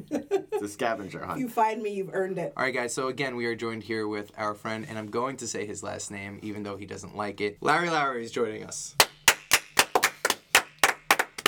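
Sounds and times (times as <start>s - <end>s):
speech: 0.6s - 9.1s
applause: 9.0s - 11.4s.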